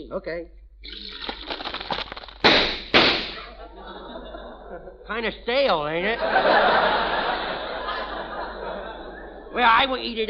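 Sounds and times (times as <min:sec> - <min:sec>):
speech: 0:00.0 - 0:01.1, 0:04.7 - 0:07.3, 0:09.5 - 0:10.2
hot cereal crackling and popping: 0:00.9 - 0:03.1
laughter: 0:03.3 - 0:05.2, 0:06.1 - 0:09.8.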